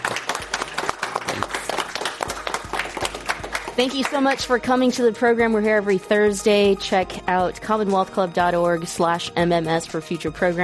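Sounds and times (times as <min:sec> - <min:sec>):
audience round of applause: 0:00.0 - 0:04.1
speech: 0:03.8 - 0:10.6.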